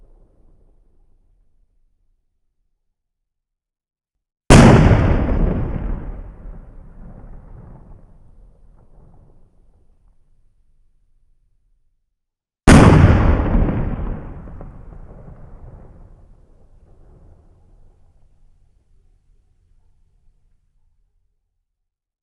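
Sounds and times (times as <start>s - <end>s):
broken explosion with boomy crack: 4.5s - 9.9s, 12.7s - 18.2s.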